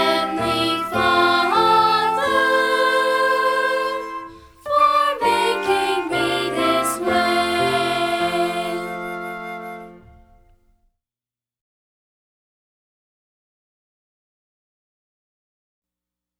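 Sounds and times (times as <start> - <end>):
music: 0.0 - 10.9.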